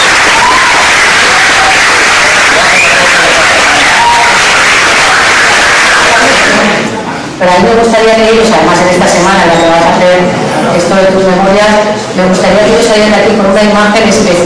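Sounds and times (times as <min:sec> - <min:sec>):
audience applause: 0:00.0 - 0:07.0
speech: 0:07.4 - 0:14.4.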